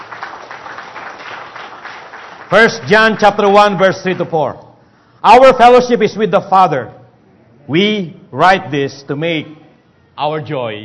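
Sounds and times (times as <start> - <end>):
congregation applauding during a church service: 0.0 - 4.5
speech: 2.5 - 4.6, 5.2 - 7.0, 7.7 - 9.6, 10.2 - 10.8.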